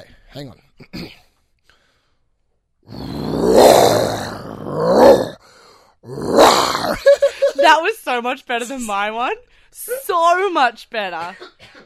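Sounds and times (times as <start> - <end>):
speech: 0.3 - 1.2, 7.1 - 11.8
person imitating a big cat roar: 2.9 - 5.4, 6.0 - 7.1.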